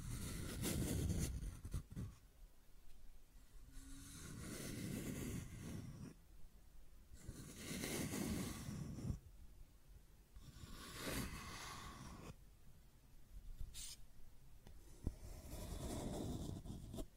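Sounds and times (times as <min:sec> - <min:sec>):
scratching and tracing strokes: 0:00.0 - 0:02.2, 0:03.6 - 0:06.2, 0:07.2 - 0:09.2, 0:10.4 - 0:12.4, 0:13.7 - 0:14.0, 0:14.8 - 0:17.1.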